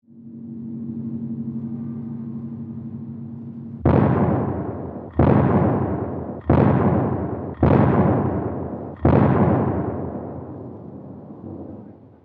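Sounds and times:
low sustained tonal hum: 0:00.0 - 0:12.2
cannon fire played from a vinyl record: 0:03.8 - 0:12.2.

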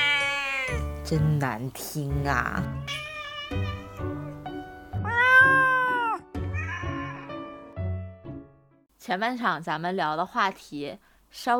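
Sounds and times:
cats meowing: 0:00.0 - 0:01.0, 0:02.6 - 0:04.2, 0:05.0 - 0:07.4
speech: 0:01.1 - 0:04.2, 0:09.1 - 0:11.5.

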